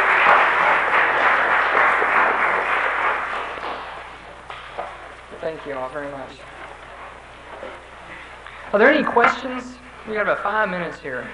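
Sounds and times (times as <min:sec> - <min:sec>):
applause: 0:00.0 - 0:04.7
speech: 0:05.6 - 0:06.6, 0:08.7 - 0:11.3.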